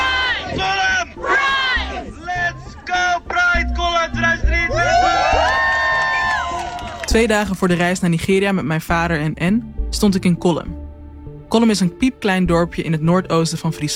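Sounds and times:
crowd chanting call-and-response: 0.0 - 3.4
large crowd cheering and shouting at rally: 0.0 - 7.2
high whoops: 4.7 - 7.1
speech: 7.1 - 10.8, 11.5 - 13.9.

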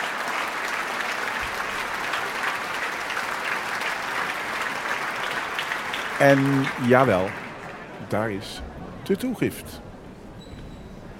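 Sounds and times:
sustained applause from a large concert audience: 0.0 - 8.3
speech: 6.2 - 7.4, 8.1 - 9.9.

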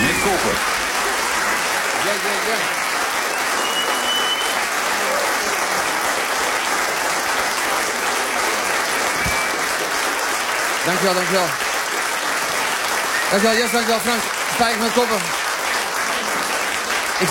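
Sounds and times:
audience applause: 0.0 - 17.3
speech: 0.3 - 0.8, 2.0 - 2.8, 10.9 - 11.6, 13.3 - 15.4.

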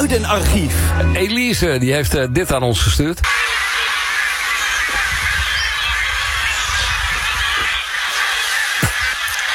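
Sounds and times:
speech: 0.1 - 3.5
flock of geese flying overhead over a campsite, honking: 3.2 - 9.5.

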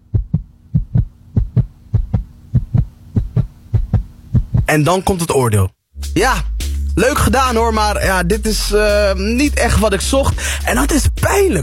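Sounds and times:
fast heartbeat sound effect: 0.0 - 4.7
speech: 4.7 - 11.6.

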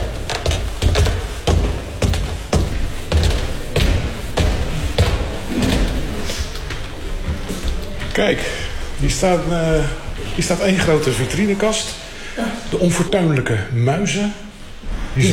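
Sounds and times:
footsteps on wooden stairs in a museum: 0.0 - 8.6
speech: 8.2 - 14.5, 15.2 - 15.3.

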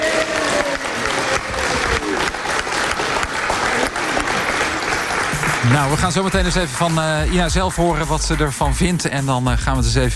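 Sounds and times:
audience applause: 0.0 - 7.4
speech: 5.7 - 10.1.

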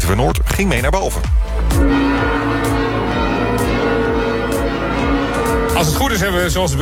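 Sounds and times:
speech: 0.1 - 2.4, 5.8 - 6.8
heavy church tower bell tolling: 1.8 - 6.5.

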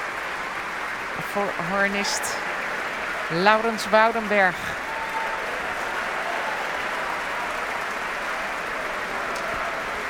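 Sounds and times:
large audience applauding orchestra musicians: 0.0 - 10.0
speech: 1.2 - 2.5, 3.3 - 4.8.

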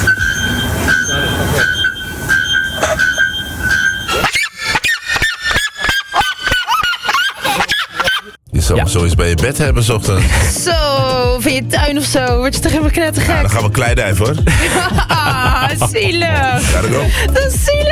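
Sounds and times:
bare-throated bellbird loud ringing metallic call: 0.0 - 5.9
seriema rapid yelping calls: 0.0 - 6.6
laughter: 4.2 - 8.4, 14.3 - 17.5
speech: 9.0 - 17.9.

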